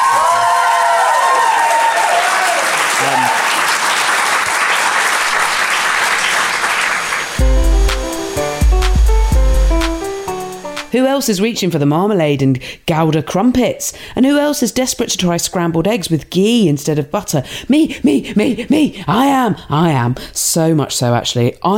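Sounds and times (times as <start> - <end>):
crowd cheering and whooping: 0.0 - 7.4
crowd clapping: 0.0 - 9.1
bright bouncy music: 7.4 - 11.0
speech: 11.0 - 21.7.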